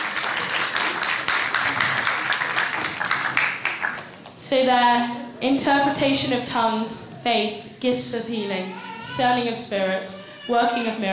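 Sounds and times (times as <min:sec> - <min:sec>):
round of applause: 0:00.0 - 0:04.2
speech: 0:04.5 - 0:11.1.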